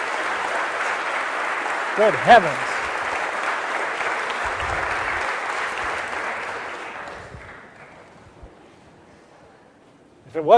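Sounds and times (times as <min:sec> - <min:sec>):
standing ovation applause: 0:00.0 - 0:08.2
speech: 0:02.0 - 0:02.7, 0:10.4 - 0:10.5.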